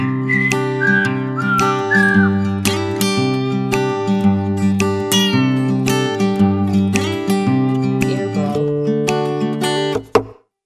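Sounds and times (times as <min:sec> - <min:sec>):
whistling: 0:00.0 - 0:02.5
happy guitar: 0:00.0 - 0:10.2.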